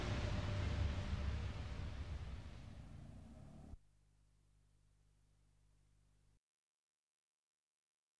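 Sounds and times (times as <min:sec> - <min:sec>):
Fiat 500 car starting off: 0:00.9 - 0:03.8.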